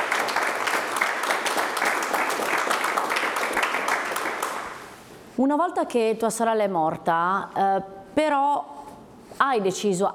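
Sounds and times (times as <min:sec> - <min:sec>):
applause: 0:00.0 - 0:05.0
speech: 0:05.4 - 0:08.8, 0:09.4 - 0:10.1.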